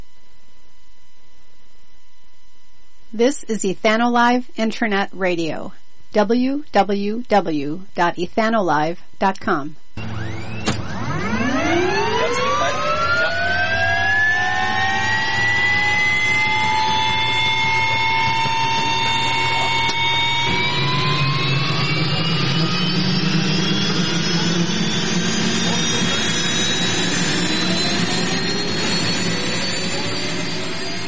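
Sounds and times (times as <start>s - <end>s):
speech: 3.2s - 10.1s
jet aircraft engine spooling up before takeoff: 10.0s - 31.0s.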